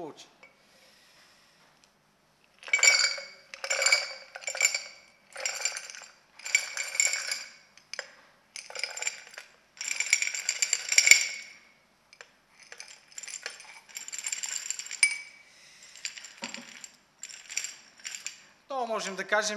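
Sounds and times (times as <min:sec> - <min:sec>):
speech: 0:00.1 - 0:00.4, 0:18.9 - 0:19.5
small stones poured into a glass jar: 0:02.6 - 0:11.6, 0:12.6 - 0:15.4, 0:16.0 - 0:18.5.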